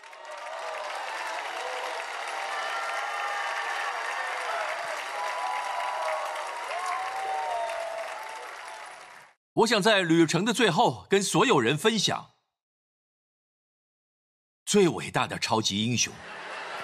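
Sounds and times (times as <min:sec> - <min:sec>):
audience clapping: 0:00.0 - 0:09.4, 0:16.4 - 0:16.8
faint voices and cheers: 0:00.0 - 0:09.4
speech: 0:09.6 - 0:12.3, 0:14.7 - 0:16.4
laughter: 0:16.2 - 0:16.8.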